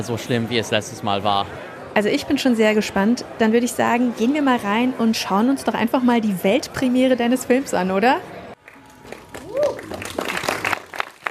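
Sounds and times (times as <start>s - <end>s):
speech: 0.0s - 8.4s
audience applause: 8.6s - 11.2s
person whooping: 9.4s - 10.2s.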